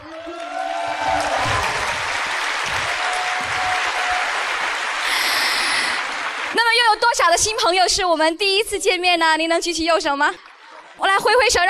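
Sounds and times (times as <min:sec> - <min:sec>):
audience applause: 0:00.0 - 0:07.1
speech: 0:07.1 - 0:11.6.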